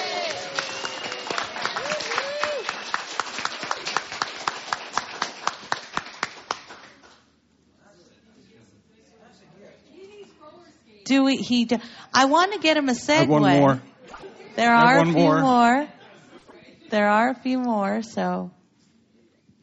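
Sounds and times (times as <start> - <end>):
rousing round of applause: 0.0 - 7.2
speech: 11.1 - 13.9, 14.6 - 16.0, 16.9 - 18.6
laughter: 14.2 - 16.6.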